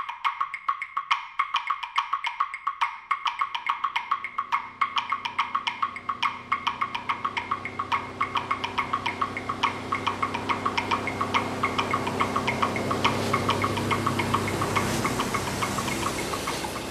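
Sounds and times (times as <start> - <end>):
fast regular ticking knock: 0.0 - 16.8
truck engine rumbling: 4.2 - 16.8.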